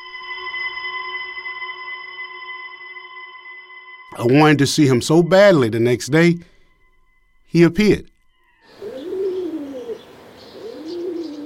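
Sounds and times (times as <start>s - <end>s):
speech: 4.2s - 6.5s, 7.5s - 8.1s
pigeons cooing: 8.7s - 11.4s.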